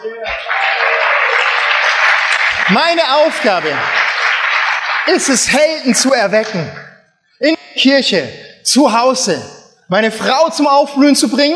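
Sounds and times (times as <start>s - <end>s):
audience applause: 0.0s - 6.9s
speech: 2.7s - 4.0s, 5.0s - 6.8s, 7.4s - 11.5s.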